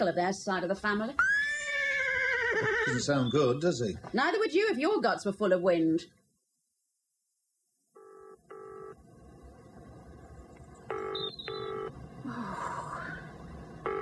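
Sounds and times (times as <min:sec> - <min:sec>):
speech: 0:00.0 - 0:01.4, 0:02.5 - 0:06.2
telephone keypad tones of a number being dialed: 0:08.0 - 0:09.0, 0:10.9 - 0:11.9
low rumble: 0:08.9 - 0:14.0.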